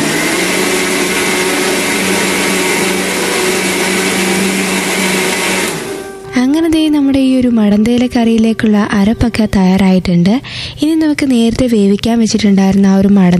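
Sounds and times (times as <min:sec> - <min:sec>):
electric mixer grinding coconut, curry leaves, shallots and chillies into paste: 0:00.0 - 0:06.3
speech: 0:07.4 - 0:13.3.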